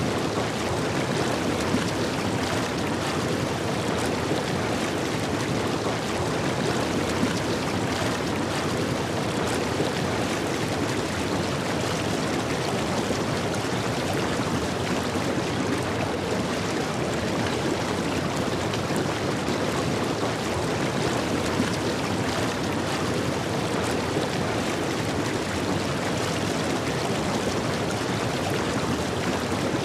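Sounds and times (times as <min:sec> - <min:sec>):
hot tub jet at high speed: 0:00.0 - 0:29.8.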